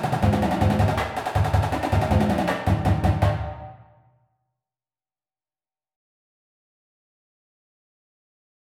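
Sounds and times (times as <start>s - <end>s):
drumline drums: 0.0s - 3.6s.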